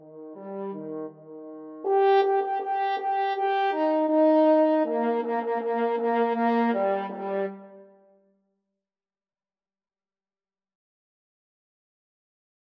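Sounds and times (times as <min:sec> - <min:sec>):
French horn duet playing a march: 0:00.0 - 0:08.0.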